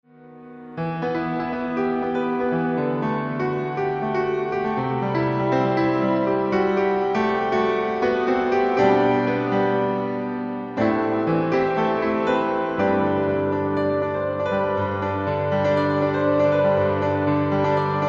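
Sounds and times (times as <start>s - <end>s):
piano intermezzo: 0.0s - 18.0s.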